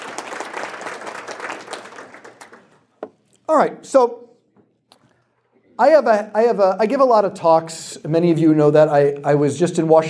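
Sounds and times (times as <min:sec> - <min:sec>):
audience applause: 0:00.0 - 0:02.8
speech: 0:03.5 - 0:04.3, 0:05.8 - 0:10.0.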